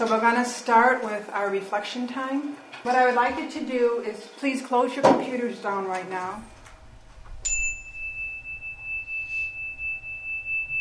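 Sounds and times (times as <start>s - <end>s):
speech: 0.0s - 6.6s
handheld chime tapped in a classroom: 7.4s - 10.7s.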